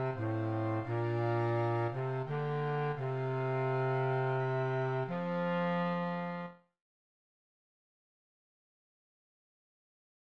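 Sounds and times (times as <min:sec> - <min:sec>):
B-flat tuba: 0:00.0 - 0:06.6.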